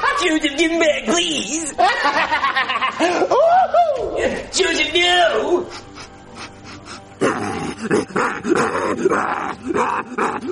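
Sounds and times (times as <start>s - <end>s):
speech: 0.2s - 5.9s, 7.8s - 10.5s
laughter: 1.6s - 4.4s
dog snarling and barking while attacking: 7.2s - 10.5s.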